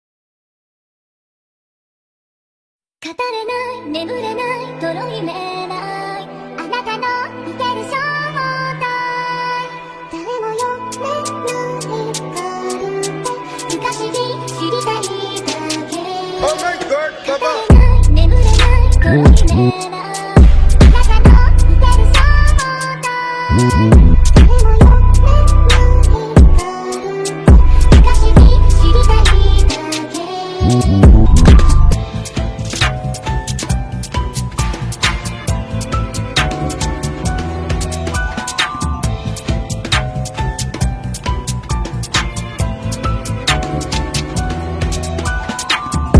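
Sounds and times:
drill music remix: 13.6s - 22.7s, 23.5s - 46.1s.

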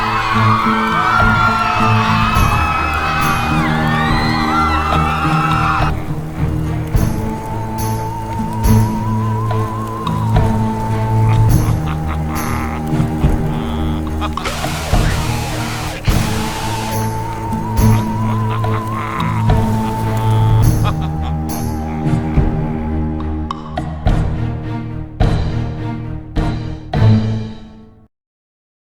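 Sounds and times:
laughter: 0.0s - 24.6s
Halloween background music: 0.0s - 28.1s
Halloween sound effects: 14.2s - 24.7s.

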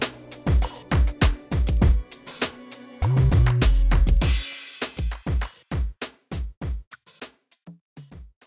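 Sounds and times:
rap music: 0.0s - 5.7s.

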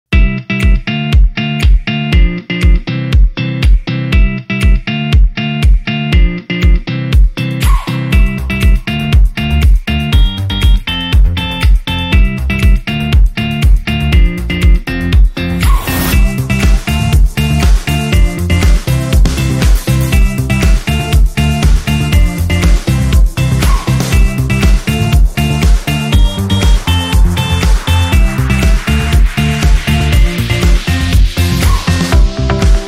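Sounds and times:
energetic positive background music: 0.2s - 32.8s.

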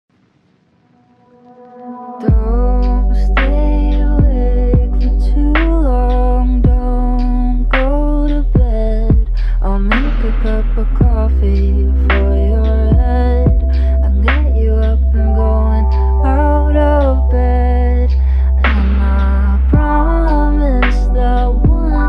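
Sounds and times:
lofi hip hop remix: 1.1s - 22.0s.

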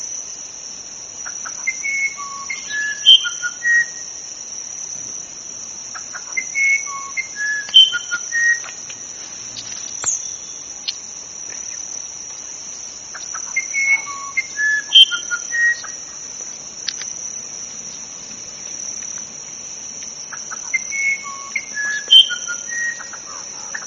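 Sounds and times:
uirapuru verdadeiro singing: 1.2s - 4.0s, 6.0s - 8.8s, 9.5s - 12.0s, 13.1s - 16.2s, 20.3s - 23.8s.

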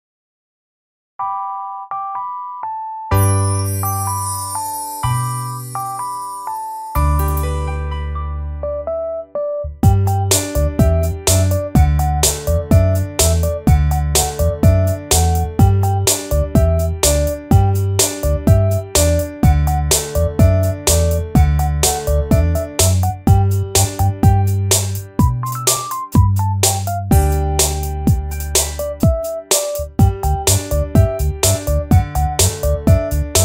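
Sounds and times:
children's song karaoke instrumental without vocals: 2.3s - 13.6s, 14.2s - 33.4s.

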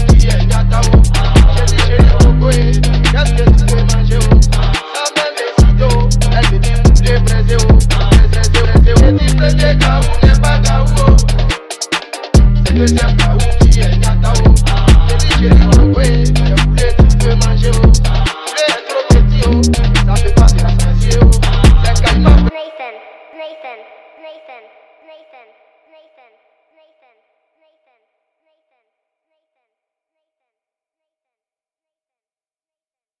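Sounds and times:
drill remix beat: 0.0s - 22.5s.

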